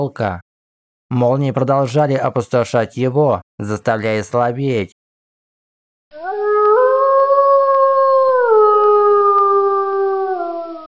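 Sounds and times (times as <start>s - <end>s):
speech: 0.0s - 0.4s, 1.1s - 5.0s
wolf howling in pain: 6.2s - 10.9s.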